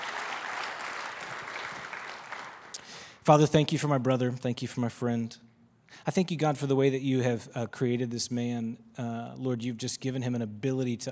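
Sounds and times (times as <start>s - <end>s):
audience clapping: 0.0s - 3.2s
speech: 3.2s - 11.1s.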